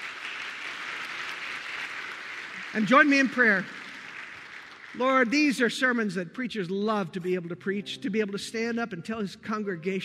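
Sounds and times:
round of applause: 0.0 - 5.6
speech: 2.7 - 3.8, 5.0 - 10.0.

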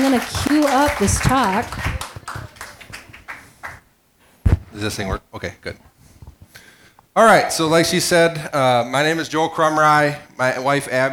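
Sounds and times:
hand claps: 0.0 - 3.8
speech: 0.1 - 2.0, 4.8 - 5.9, 7.2 - 11.1.

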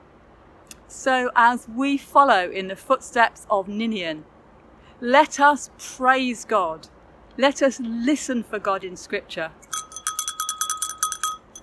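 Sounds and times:
speech: 0.9 - 4.3, 5.0 - 9.7
bell rung in celebration: 9.6 - 11.6.

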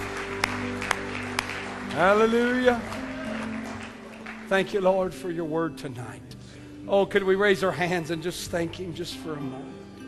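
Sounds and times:
audience hand claps: 0.0 - 5.0
speech: 2.0 - 3.0, 4.5 - 9.8.

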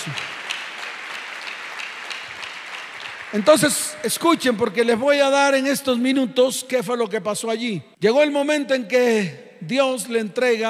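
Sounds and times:
speech: 0.0 - 0.3, 3.3 - 10.6
audience applause: 0.0 - 3.9.

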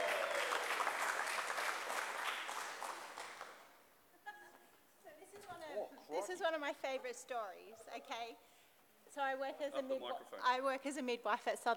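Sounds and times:
audience round of applause: 0.0 - 3.6
speech: 6.3 - 8.5, 9.1 - 11.7.

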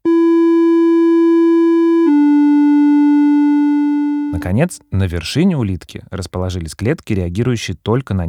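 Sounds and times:
mid-frequency electronic test tone from 600 to 1500 Hz: 0.0 - 4.5
speech: 4.4 - 8.2.

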